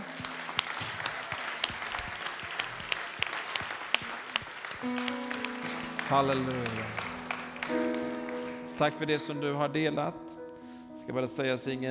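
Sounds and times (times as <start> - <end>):
audience applause: 0.0 - 9.0
speech: 4.8 - 5.0, 6.1 - 7.0, 8.8 - 10.2, 11.1 - 11.9.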